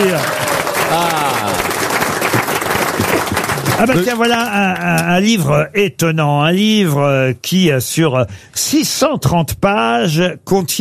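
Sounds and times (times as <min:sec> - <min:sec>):
audience applause: 0:00.0 - 0:05.0
speech: 0:03.8 - 0:10.7.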